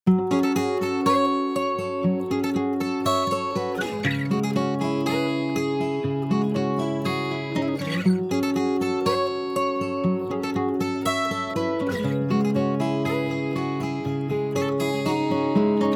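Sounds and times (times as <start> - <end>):
guitar: 0.0 - 15.9.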